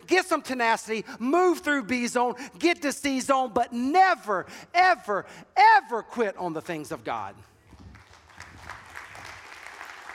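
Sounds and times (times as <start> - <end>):
speech: 0.3 - 7.5
audience clapping: 7.7 - 10.1.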